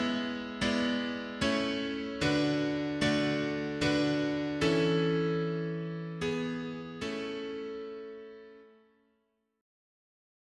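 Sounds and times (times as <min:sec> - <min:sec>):
mono piano playing hymns: 0:00.0 - 0:08.4.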